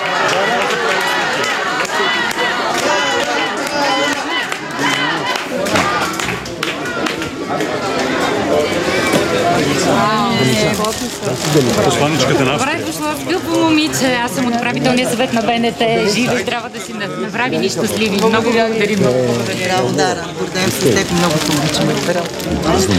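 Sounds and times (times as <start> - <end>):
scattered claps: 0.0 - 8.2
crowd cheering at Sofia airport: 0.0 - 11.0
hubbub of many voices at Sofia airport: 0.0 - 22.9
speech: 11.6 - 22.9.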